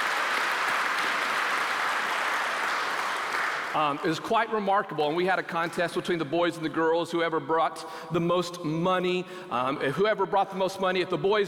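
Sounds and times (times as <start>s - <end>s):
applause, hand clap of praise: 0.0s - 4.2s
speech: 3.8s - 11.4s.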